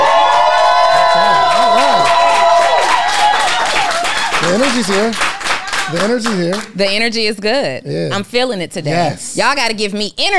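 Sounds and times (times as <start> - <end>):
live studio audience cheering and whooping for a talk show host: 0.0 - 6.7
speech: 4.5 - 5.3, 5.9 - 10.3.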